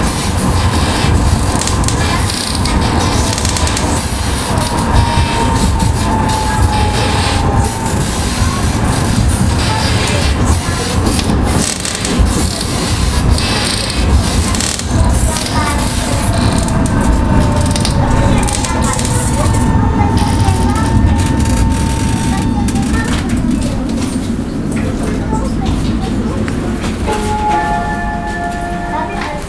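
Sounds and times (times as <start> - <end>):
creaking: 0.0 - 29.4.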